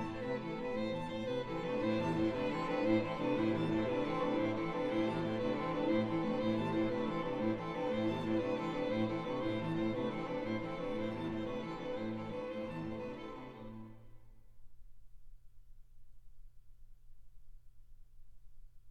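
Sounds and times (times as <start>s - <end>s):
string quartet playing: 0.0s - 14.0s.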